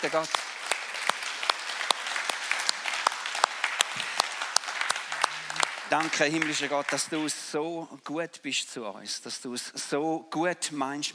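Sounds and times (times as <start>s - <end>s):
speech: 0.0s - 0.4s, 5.9s - 11.1s
audience applause: 0.0s - 7.4s.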